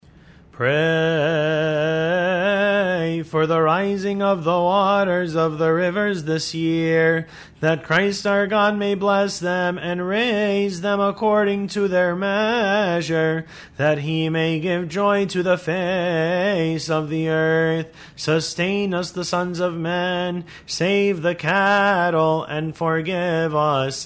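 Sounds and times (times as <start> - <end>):
hymn: 0.5 - 24.0.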